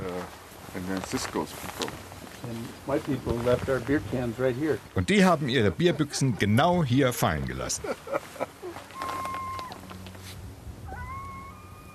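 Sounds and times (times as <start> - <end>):
speech: 0.8 - 8.4
laughter: 5.4 - 6.8, 7.6 - 9.0
coyote howling: 8.6 - 10.0, 10.8 - 11.9.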